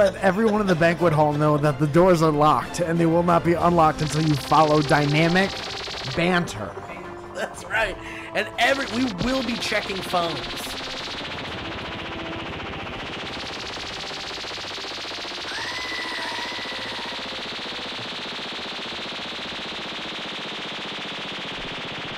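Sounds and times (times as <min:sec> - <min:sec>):
speech: 0:00.0 - 0:10.7
laser gun firing: 0:03.7 - 0:06.9, 0:08.6 - 0:22.1.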